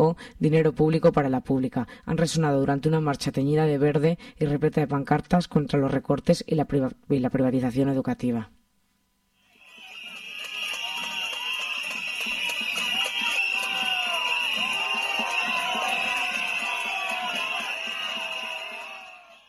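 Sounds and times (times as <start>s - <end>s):
speech: 0.1s - 8.6s
protest crowd whistling to jeer Azcón in Huesca: 9.4s - 19.4s.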